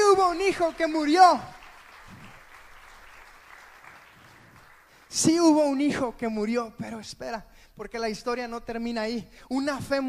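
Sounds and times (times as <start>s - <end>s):
audience applause: 0.0s - 5.1s
speech: 0.3s - 1.6s, 5.1s - 10.0s.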